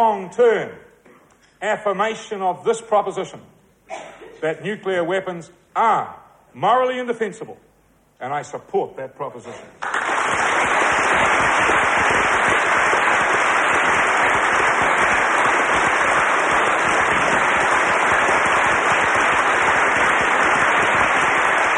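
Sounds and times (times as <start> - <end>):
speech: 0.0 - 0.9, 1.6 - 11.9
standing ovation applause at the Oxford Union: 9.8 - 21.7.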